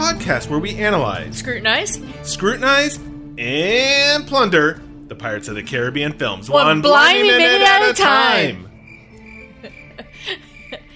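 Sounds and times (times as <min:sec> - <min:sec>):
speech: 0:00.1 - 0:08.7, 0:09.6 - 0:10.4
cricket chirping sound effect: 0:08.0 - 0:10.9.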